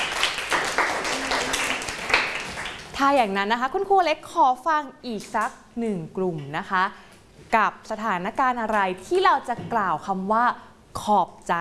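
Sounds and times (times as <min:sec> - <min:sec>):
group of children clapping: 0:00.0 - 0:03.0
speech: 0:03.0 - 0:11.5.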